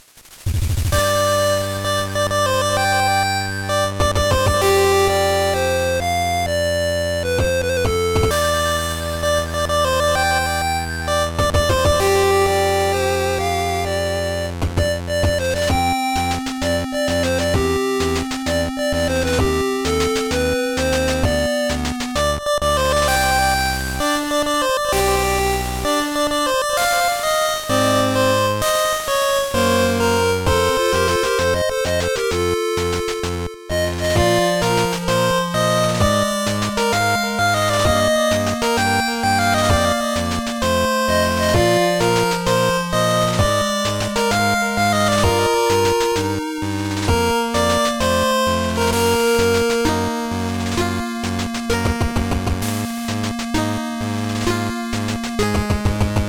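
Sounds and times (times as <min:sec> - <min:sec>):
8-bit music: 0:00.9 - 0:56.2.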